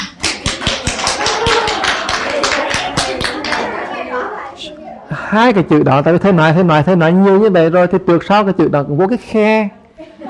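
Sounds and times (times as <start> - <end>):
audience clapping loudly on request: 0.0 - 3.8
speech: 5.3 - 10.2.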